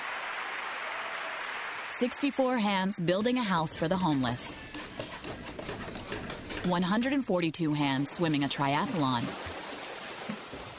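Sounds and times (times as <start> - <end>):
large crowd applauding: 0.0 - 2.3
speech: 2.0 - 4.9, 6.6 - 9.5.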